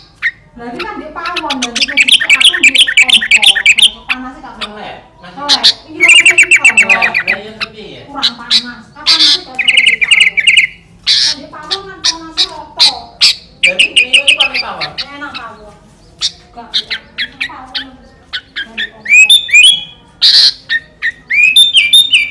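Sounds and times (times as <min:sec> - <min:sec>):
sooty-headed bulbul song in fierce style: 0:00.0 - 0:22.2.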